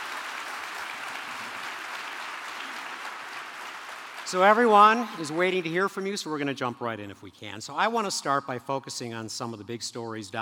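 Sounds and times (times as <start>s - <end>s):
audience applause: 0.0s - 6.0s
speech: 4.3s - 10.3s.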